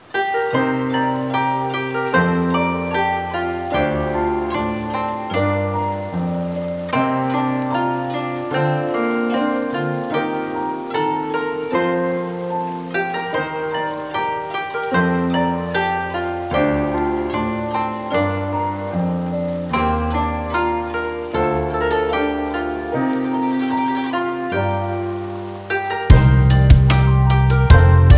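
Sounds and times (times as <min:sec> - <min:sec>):
Japanese lo-fi music: 0:00.4 - 0:28.1.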